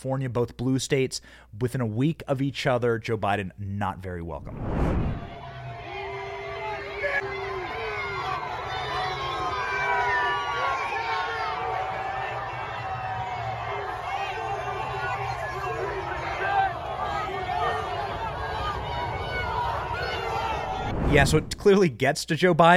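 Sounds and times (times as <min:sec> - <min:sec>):
speech: 0:00.0 - 0:05.3, 0:21.2 - 0:22.7
crowd chanting and jeering against Joe Biden as his motorcade drives by: 0:05.1 - 0:21.5.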